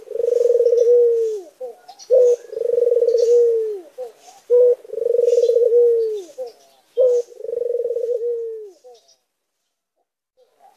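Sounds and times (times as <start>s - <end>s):
white Barbary dove cooing: 0.0s - 9.2s.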